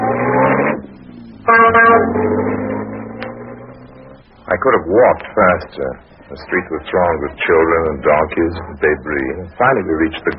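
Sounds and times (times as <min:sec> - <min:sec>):
taxi horn honk: 0:00.0 - 0:04.2
old taxi engine droning: 0:00.0 - 0:10.3
speech: 0:04.6 - 0:10.3.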